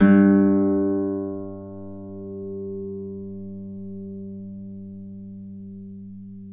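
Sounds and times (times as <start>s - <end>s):
Celtic harp music: 0.0s - 6.4s.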